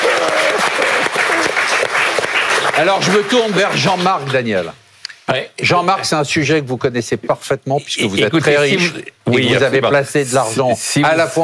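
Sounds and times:
audience applause: 0.0 - 4.4
speech: 2.8 - 11.4.

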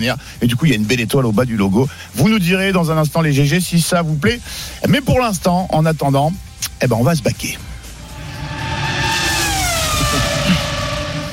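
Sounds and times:
speech: 0.0 - 7.7
Sebastian Vettel's Aston Martin Formula 1 race car engine whine: 7.6 - 11.3.

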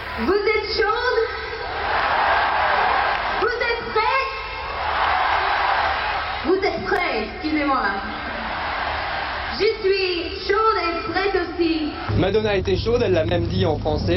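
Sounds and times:
speech: 0.2 - 0.5, 12.2 - 14.1
huge concert crowd cheering and screaming: 1.5 - 12.5.

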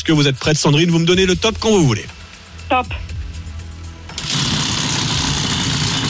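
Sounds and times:
speech: 0.0 - 3.1
RMC prize wheel spinning: 4.1 - 6.0.

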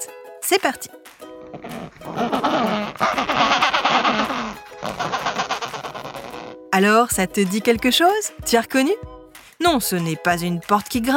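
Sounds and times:
speech: 0.5 - 2.4, 6.8 - 11.1
Adélie penguin braying call: 1.4 - 6.6.

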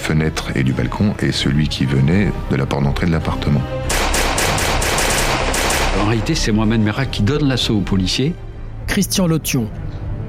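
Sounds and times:
speech: 0.1 - 3.9, 6.0 - 10.0
automatic gunfire: 3.9 - 6.4.

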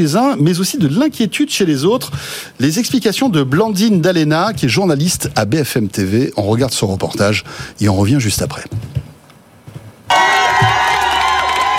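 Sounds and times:
speech: 0.0 - 9.0
crowd cheering and whooping: 10.1 - 11.7.

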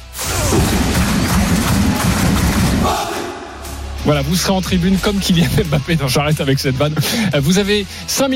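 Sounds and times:
stadium crowd roaring and chanting: 0.4 - 4.0
football supporters clapping in rhythmic unison in a stadium: 0.6 - 3.1
speech: 4.1 - 8.3.

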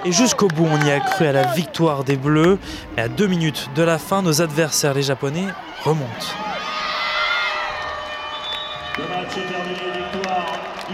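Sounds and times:
spectators applauding at match: 0.0 - 2.6, 7.2 - 10.9
speech: 0.0 - 6.6, 9.0 - 10.9
spectators cheering after a match: 0.0 - 10.9.

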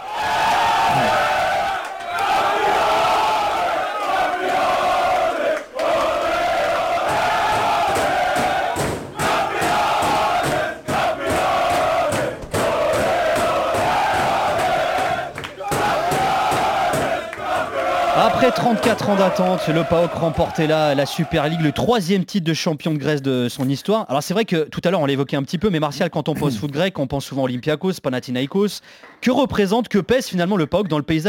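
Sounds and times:
football team chanting and shouting in the dressing room: 0.0 - 21.9
speech: 18.4 - 31.2.

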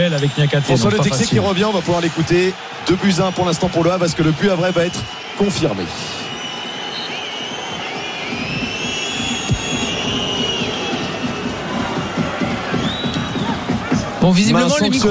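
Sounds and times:
whistles: 0.0 - 1.3, 3.0 - 14.1
speech: 0.0 - 6.2, 14.2 - 15.0
large stadium crowd cheering: 0.0 - 15.0.

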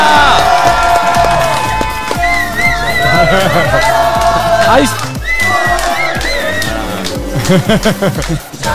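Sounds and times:
fan zone crowd cheering and shouting: 0.0 - 8.7
laughter: 2.4 - 8.7.

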